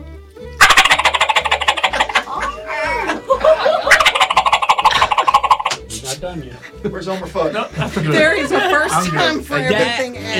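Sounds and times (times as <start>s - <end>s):
turkey gobbles made with a mouth diaphragm call: 0.6s - 2.6s, 3.9s - 5.8s
laughter: 1.8s - 5.6s, 6.5s - 10.3s
speech: 6.3s - 10.3s.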